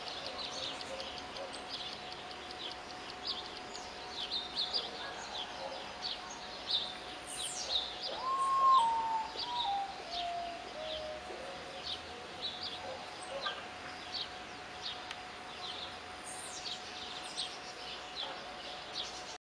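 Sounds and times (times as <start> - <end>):
other birds chirping high: 0.0 - 19.3
potoo song of soft whistled notes: 7.4 - 11.2.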